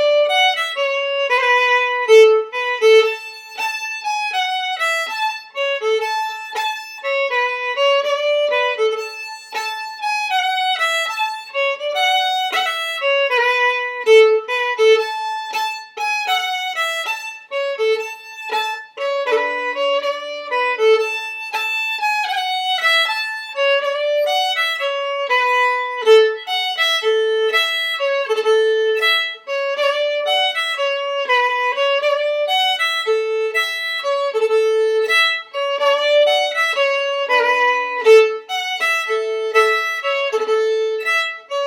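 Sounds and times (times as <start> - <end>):
fiddle playing at medium tempo: 0.0 - 41.6.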